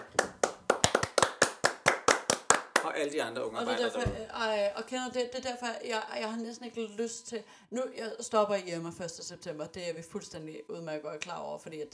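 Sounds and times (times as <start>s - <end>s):
applause, hands clapping: 0.0s - 3.0s
speech: 2.9s - 11.9s.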